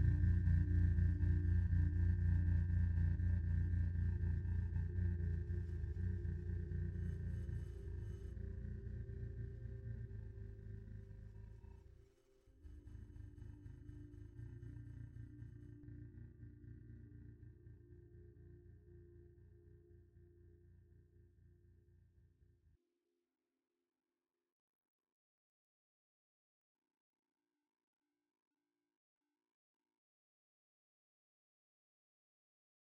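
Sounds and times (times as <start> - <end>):
music for whales: 0.0 - 22.8.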